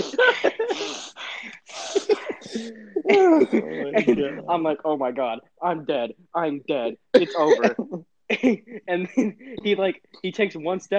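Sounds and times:
voice imitating heavy angry breathing: 0.0 - 4.4
speech: 3.1 - 10.9.

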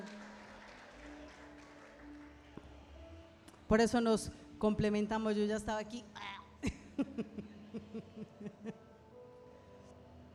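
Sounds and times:
audience applause: 0.0 - 2.4
speech: 3.7 - 6.7
laughter: 6.6 - 8.8.

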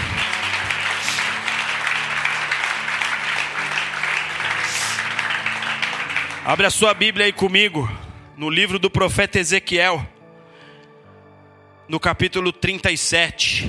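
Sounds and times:
audience applauding: 0.0 - 7.8
speech: 6.5 - 10.2, 11.9 - 13.6.

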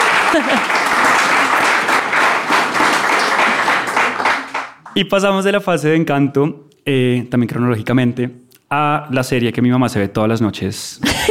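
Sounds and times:
laughter: 0.0 - 2.2, 11.0 - 11.2
audience applause: 0.0 - 5.0
speech: 0.3 - 0.8, 5.0 - 11.2.

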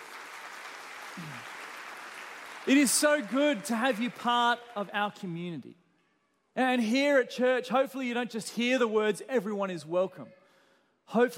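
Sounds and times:
audience applause: 0.0 - 4.5
speech: 1.2 - 1.5, 2.6 - 5.8, 6.6 - 10.4, 11.1 - 11.3.

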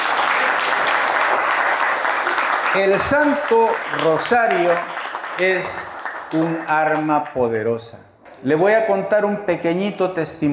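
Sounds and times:
audience applause at a Catholic religious talk on the Holy Rosary: 0.0 - 7.2
speech: 2.8 - 10.5.

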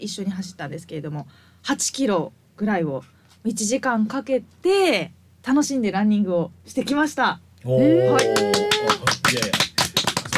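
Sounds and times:
speech: 0.0 - 9.7
clapping: 8.1 - 10.3.

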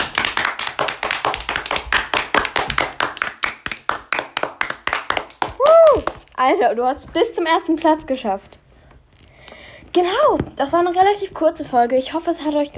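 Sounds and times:
long applause: 0.0 - 6.2
speech: 6.4 - 8.6, 10.0 - 12.7.

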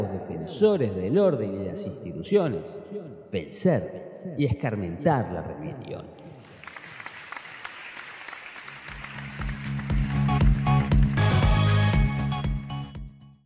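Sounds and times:
speech: 0.2 - 6.3
audience applause: 6.3 - 11.7.

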